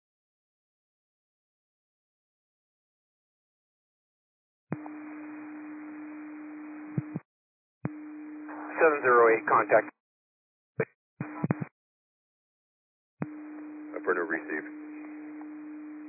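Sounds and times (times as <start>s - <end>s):
radio dispatch cancellation tone: 4.7s - 7.2s, 7.9s - 9.9s, 11.2s - 11.7s, 13.2s - 16.0s
radio static: 7.9s - 9.9s, 11.2s - 11.7s, 13.2s - 16.0s
garbled radio talk: 8.5s - 9.9s, 13.9s - 15.2s
speech: 8.8s - 10.0s, 10.8s - 11.0s, 14.1s - 14.8s.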